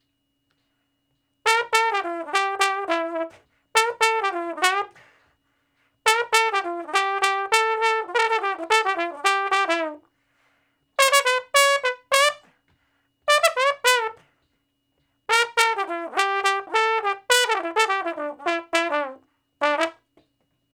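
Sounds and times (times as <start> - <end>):
trombone shuffle in E: 1.5 - 5.2, 6.0 - 10.0, 11.0 - 12.5, 13.3 - 14.3, 15.3 - 20.0.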